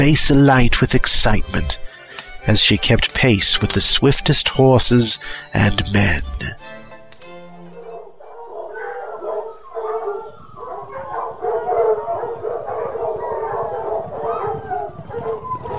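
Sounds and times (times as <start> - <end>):
speech: 0.0 - 6.8
hunting hounds baying and howling: 7.7 - 15.7.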